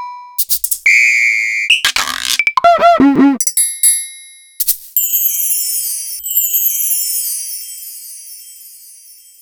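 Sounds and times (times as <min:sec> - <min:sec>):
Korg Triton Standard Kit synthesizer drum kit: 0:00.4 - 0:03.4.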